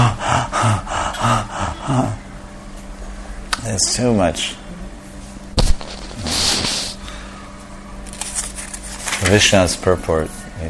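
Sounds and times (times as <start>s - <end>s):
voice imitating heavy labored breathing: 0.0s - 2.2s, 5.9s - 7.3s
speech: 3.8s - 4.6s, 9.3s - 10.6s.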